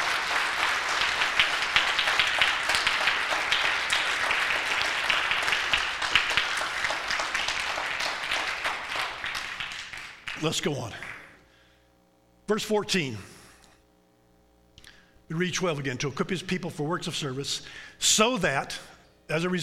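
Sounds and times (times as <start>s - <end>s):
applause from a church congregation during a sermon: 0.0s - 11.4s
speech: 10.4s - 11.0s, 12.5s - 13.3s, 15.3s - 19.6s.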